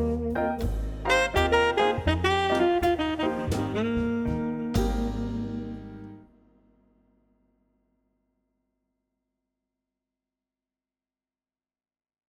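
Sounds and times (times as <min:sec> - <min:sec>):
romantic evening jazz: 0:00.0 - 0:06.3.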